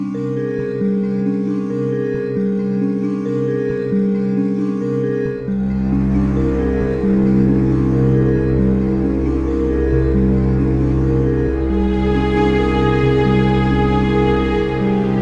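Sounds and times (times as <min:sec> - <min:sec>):
ominous music: 0:00.0 - 0:15.2.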